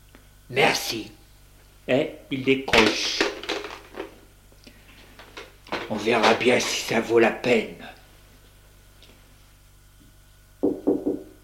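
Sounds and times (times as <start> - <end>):
speech: 0.5 - 1.2, 1.9 - 3.3, 5.9 - 8.0
knocking on a door: 10.6 - 11.3.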